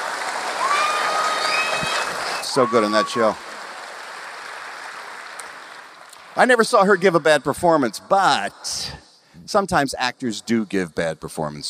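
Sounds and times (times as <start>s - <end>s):
round of applause: 0.0s - 6.8s
speech: 2.6s - 3.5s, 6.4s - 11.6s.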